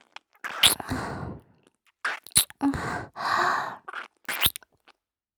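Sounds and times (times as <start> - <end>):
ASMR kissing sounds: 0.5 - 0.9, 2.1 - 2.6, 4.3 - 4.5.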